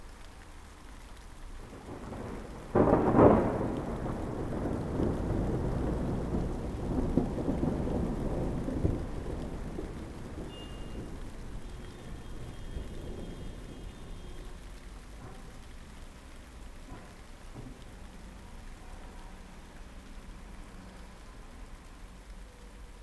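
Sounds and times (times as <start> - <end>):
distant thunder: 1.6 - 15.7.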